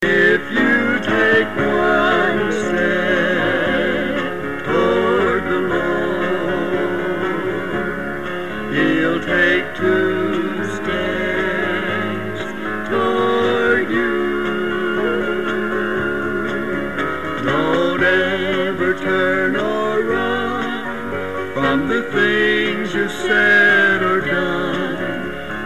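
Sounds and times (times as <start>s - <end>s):
theme music: 0.0s - 25.6s.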